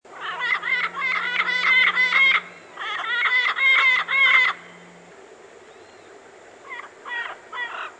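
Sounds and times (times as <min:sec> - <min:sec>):
parrots squawking and chattering: 0:00.1 - 0:04.9, 0:06.6 - 0:07.9.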